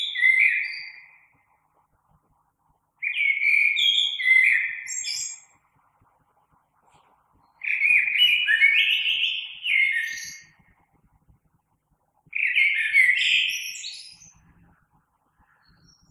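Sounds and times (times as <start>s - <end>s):
blackbird: 0.0s - 1.5s, 3.0s - 5.6s, 6.9s - 10.8s, 12.3s - 16.0s.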